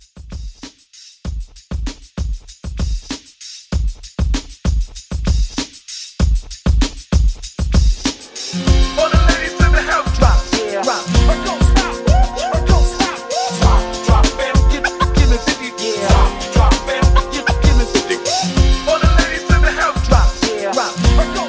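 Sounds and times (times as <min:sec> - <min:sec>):
hype drums: 0:00.0 - 0:21.4.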